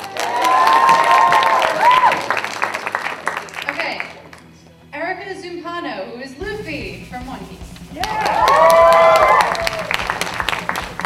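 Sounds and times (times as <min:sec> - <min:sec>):
audience cheering: 0:00.0 - 0:03.5, 0:08.0 - 0:11.0
audience applause: 0:00.0 - 0:04.4, 0:08.0 - 0:11.0.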